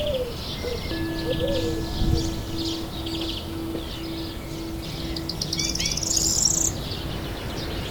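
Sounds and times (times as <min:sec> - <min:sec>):
bright bird chirps: 0:00.0 - 0:07.8
held tone: 0:00.8 - 0:07.4
steady low rush: 0:00.9 - 0:07.5.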